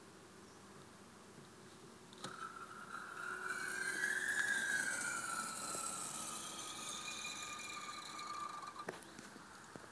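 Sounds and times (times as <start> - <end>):
650N gas spring: 2.1 - 9.4.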